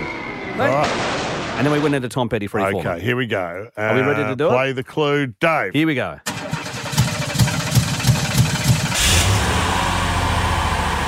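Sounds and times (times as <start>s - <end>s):
speech: 0.6s - 6.4s
car engine running: 6.3s - 11.0s.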